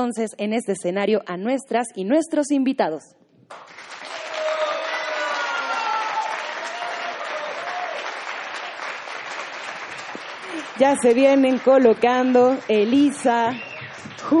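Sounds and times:
speech: 0:00.0 - 0:03.8, 0:10.8 - 0:14.3
audience applause: 0:03.5 - 0:14.3.

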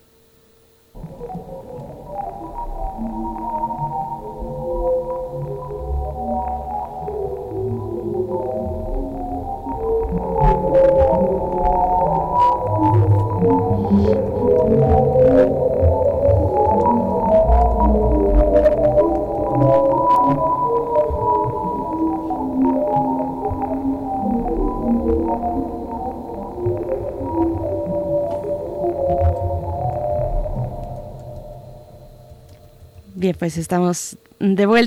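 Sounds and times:
sonification of Hubble deep-space data: 0:00.9 - 0:34.6
speech: 0:33.4 - 0:34.8.

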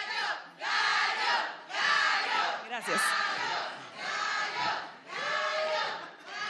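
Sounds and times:
live-show audience chanting a porra cheer: 0:00.0 - 0:06.4.

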